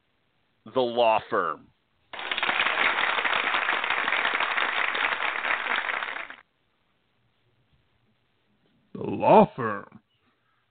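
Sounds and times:
speech: 0:00.7 - 0:01.7, 0:09.0 - 0:10.0
applause sound effect: 0:02.1 - 0:06.4.

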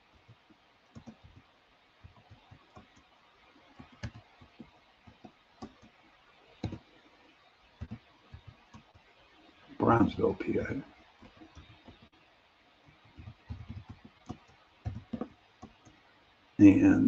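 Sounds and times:
computer keyboard typing as a date is entered: 0:00.9 - 0:01.4, 0:02.0 - 0:06.0, 0:06.6 - 0:06.9, 0:07.8 - 0:09.0, 0:11.2 - 0:12.1, 0:13.0 - 0:16.0
speech: 0:09.9 - 0:11.0, 0:16.6 - 0:17.0.

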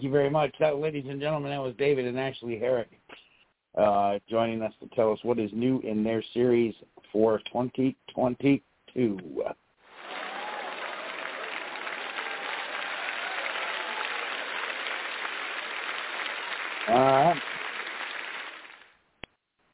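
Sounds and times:
speech: 0:00.0 - 0:03.0, 0:03.7 - 0:09.6, 0:16.9 - 0:17.5
audience clapping: 0:09.9 - 0:19.0
person whooping: 0:10.0 - 0:15.2, 0:16.8 - 0:17.5.

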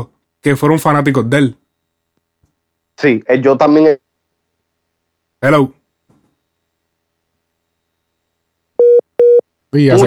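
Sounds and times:
speech: 0:00.0 - 0:01.6, 0:03.0 - 0:04.0, 0:05.4 - 0:05.8, 0:09.7 - 0:10.0
telephone busy tone after a call was cut off: 0:08.8 - 0:09.4.

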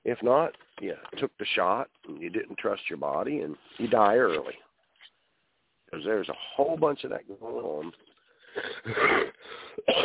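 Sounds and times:
speech: 0:00.1 - 0:04.6, 0:05.9 - 0:10.0
harsh raspy coughing: 0:08.5 - 0:10.0.

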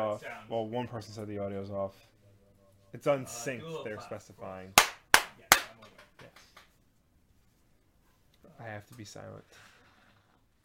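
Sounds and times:
speech: 0:00.0 - 0:02.2, 0:02.9 - 0:04.9, 0:08.6 - 0:09.7
single hand clap for audio sync: 0:04.8 - 0:06.8.

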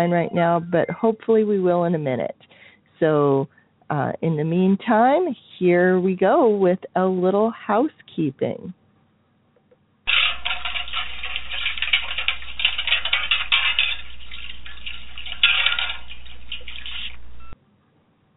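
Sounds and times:
speech: 0:00.0 - 0:08.8
metal plates washed in a metal wash tub on a stove: 0:10.1 - 0:17.6.

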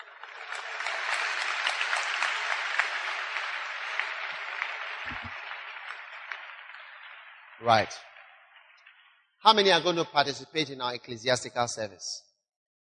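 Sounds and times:
audience clapping: 0:00.0 - 0:10.1
speech: 0:07.6 - 0:08.1, 0:09.4 - 0:12.3.

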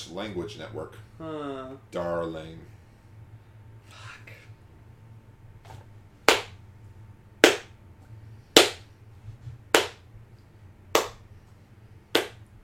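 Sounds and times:
speech: 0:00.1 - 0:02.8
man clapping: 0:06.3 - 0:06.6, 0:11.0 - 0:11.2, 0:12.2 - 0:12.4.

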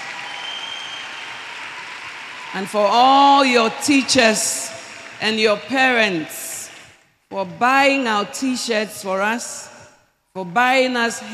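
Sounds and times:
audience applause: 0:00.0 - 0:02.6, 0:04.8 - 0:05.2
speech: 0:02.5 - 0:06.4, 0:07.3 - 0:09.7, 0:10.4 - 0:11.3.

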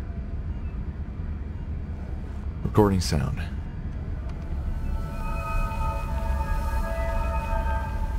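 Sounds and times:
steady low rumble: 0:00.0 - 0:08.1
speech: 0:02.6 - 0:03.6
eerie chime-like musical tones from instrument panels: 0:04.1 - 0:08.1.

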